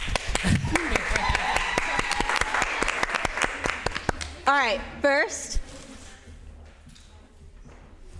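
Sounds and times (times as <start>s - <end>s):
people clapping hands: 0.0s - 4.5s
speech: 4.7s - 5.6s.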